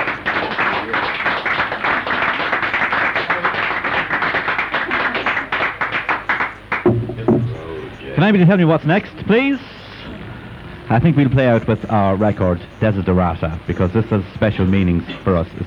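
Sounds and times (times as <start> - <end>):
crowd applauding: 0.0 - 7.9
speech: 8.2 - 9.7, 10.9 - 15.6.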